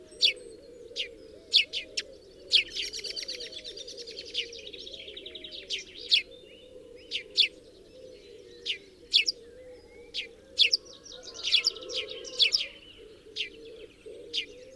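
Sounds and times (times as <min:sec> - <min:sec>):
house sparrow Passer domesticus chirping and chattering: 0:00.0 - 0:06.3, 0:08.6 - 0:09.4, 0:10.1 - 0:14.7.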